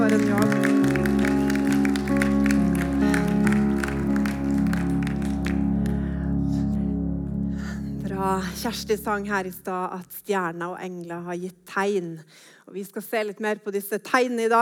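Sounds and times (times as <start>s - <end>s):
audience applause: 0.0s - 6.2s
steady low tone: 0.0s - 10.0s
speech: 8.6s - 14.6s.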